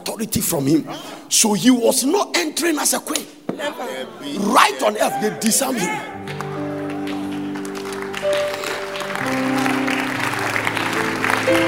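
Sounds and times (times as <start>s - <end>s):
speech: 0.1s - 6.4s
crowd applause: 6.2s - 11.6s.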